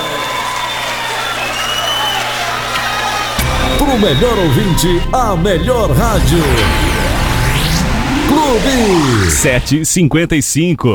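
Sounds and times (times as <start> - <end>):
audience applause: 0.0 - 3.7
crowd noise: 0.0 - 9.9
speech: 3.9 - 6.8, 8.3 - 10.9.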